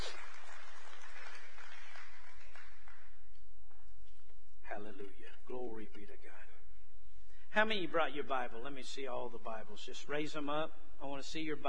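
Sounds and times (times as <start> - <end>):
crowd applause: 0.0 - 3.2
speech: 7.6 - 11.6.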